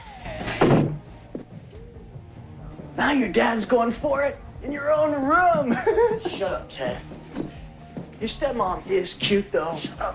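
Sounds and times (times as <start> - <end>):
bedroom door closing in an audio drama: 0.3 - 1.1
speech: 3.0 - 7.2, 8.2 - 10.1
laughter: 5.6 - 6.6.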